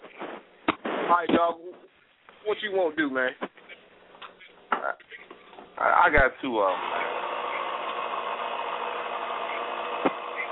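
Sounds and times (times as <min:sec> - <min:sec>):
speech: 0:01.1 - 0:01.7, 0:02.4 - 0:03.5, 0:05.8 - 0:07.0
blender running: 0:06.6 - 0:10.5.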